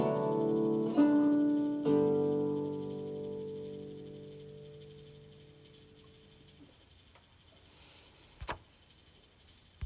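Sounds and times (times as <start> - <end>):
gothic harp music: 0.0 - 5.3.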